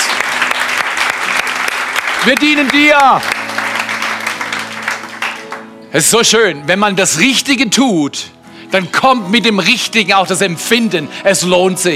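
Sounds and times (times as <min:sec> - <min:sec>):
audience applause: 0:00.0 - 0:05.7
speech: 0:02.2 - 0:03.4, 0:05.9 - 0:11.9.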